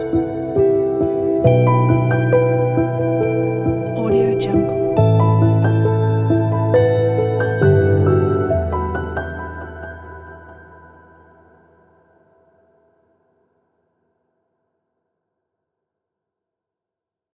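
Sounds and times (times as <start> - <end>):
sad piano: 0.0 - 13.3.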